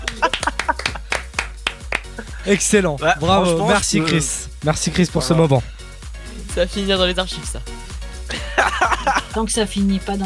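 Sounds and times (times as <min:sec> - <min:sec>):
laughter: 0:00.0 - 0:01.5, 0:02.2 - 0:05.6, 0:08.3 - 0:09.5
hands clapping: 0:00.0 - 0:05.6
speech: 0:02.4 - 0:05.7, 0:06.6 - 0:07.7, 0:09.0 - 0:10.2.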